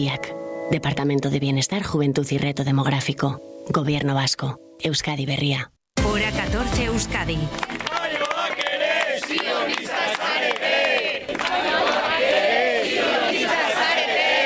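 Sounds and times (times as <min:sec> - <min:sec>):
speech: 0:00.0 - 0:07.8
brief claps: 0:07.5 - 0:12.1
crowd shouting slogans: 0:07.7 - 0:14.4.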